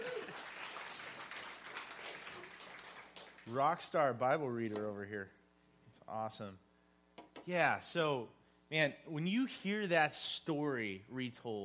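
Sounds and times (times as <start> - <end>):
audience clapping: 0.0 - 3.9
speech: 3.5 - 5.4, 6.1 - 6.7, 7.4 - 11.6.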